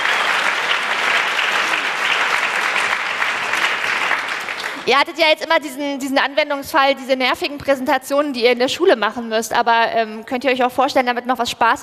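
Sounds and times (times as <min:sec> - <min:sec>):
audience applause: 0:00.0 - 0:04.9
speech: 0:04.8 - 0:11.8.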